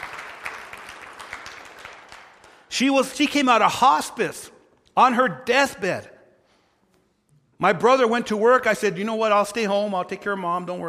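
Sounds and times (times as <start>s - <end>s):
audience applause: 0.0s - 2.6s
speech: 2.8s - 6.1s, 7.6s - 10.8s.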